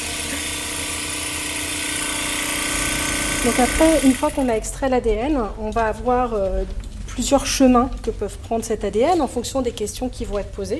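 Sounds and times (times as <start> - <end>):
tissue lyser bead homogenizer vibrating: 0.0 - 4.6
speech: 3.4 - 10.7.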